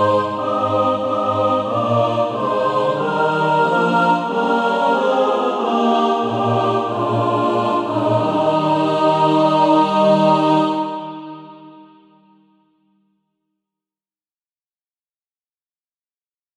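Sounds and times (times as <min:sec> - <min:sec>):
mixed SATB choir practice music: 0:00.0 - 0:12.4.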